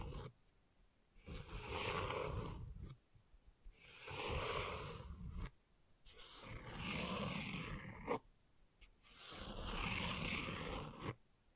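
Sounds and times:
gentle scratching: 0.0s - 0.4s, 1.2s - 3.0s, 3.7s - 8.2s, 8.8s - 11.2s.

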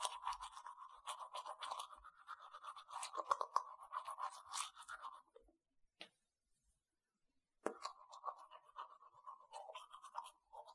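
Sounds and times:
person brushing teeth: 0.0s - 5.4s, 7.7s - 10.7s.

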